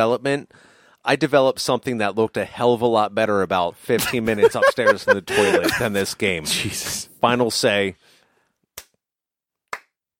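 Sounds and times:
speech: 0:00.0 - 0:08.1
laughter: 0:04.0 - 0:06.1
slow hand clapping: 0:09.7 - 0:10.0.

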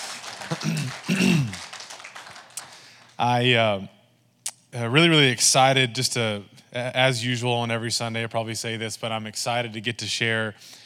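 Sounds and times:
audience clapping: 0:00.0 - 0:03.4
speech: 0:00.5 - 0:01.6, 0:03.2 - 0:04.0, 0:04.7 - 0:10.8.

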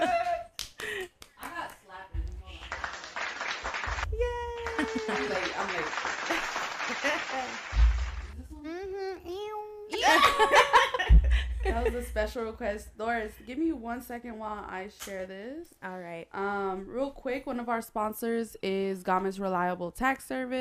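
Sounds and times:
laughter: 0:00.0 - 0:01.1, 0:04.6 - 0:07.6, 0:10.0 - 0:12.1
applause sound effect: 0:02.2 - 0:08.4
speech: 0:11.8 - 0:20.5.

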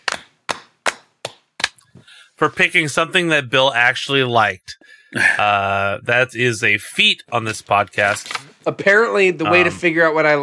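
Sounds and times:
slow golf clap: 0:00.0 - 0:02.0
speech: 0:02.4 - 0:10.4.

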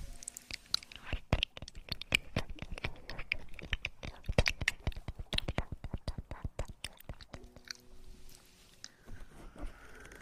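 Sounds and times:
ear eating wet mouth clicks, smacks and pops: 0:00.1 - 0:07.9.

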